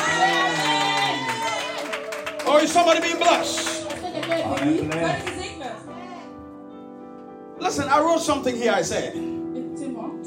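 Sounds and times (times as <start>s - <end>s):
audience shouting: 0.0s - 2.4s
audience clapping: 0.0s - 5.8s
speech: 2.5s - 3.7s, 4.3s - 5.4s, 7.6s - 9.4s.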